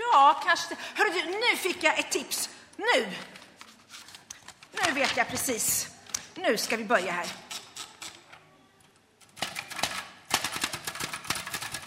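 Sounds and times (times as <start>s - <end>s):
speech: 0.2s - 3.4s, 4.7s - 7.4s
fast typing on a keyboard: 9.4s - 11.8s.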